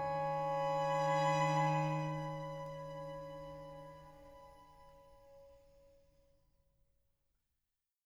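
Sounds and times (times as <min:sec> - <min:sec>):
ensemble music for six: 0:00.0 - 0:04.5.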